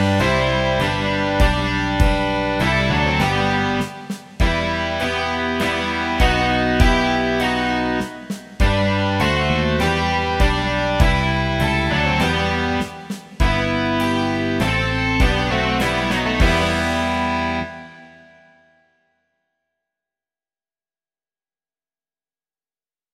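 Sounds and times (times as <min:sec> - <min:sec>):
rock music: 0:00.0 - 0:18.2.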